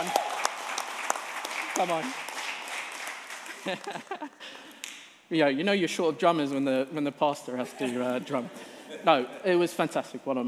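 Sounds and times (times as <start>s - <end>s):
group clapping: 0.0s - 5.2s
speech: 1.8s - 2.3s, 3.6s - 4.7s, 5.3s - 10.4s
laughter: 3.4s - 4.7s, 7.5s - 9.4s.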